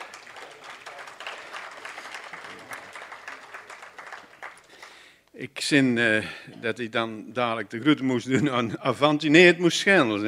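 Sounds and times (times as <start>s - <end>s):
applause: 0.0s - 5.2s
speech: 5.4s - 10.2s.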